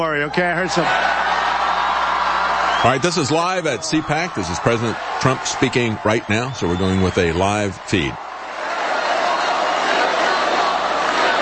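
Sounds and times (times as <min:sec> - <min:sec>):
speech: 0:00.0 - 0:01.3, 0:02.8 - 0:08.2
crowd applauding: 0:00.5 - 0:11.3.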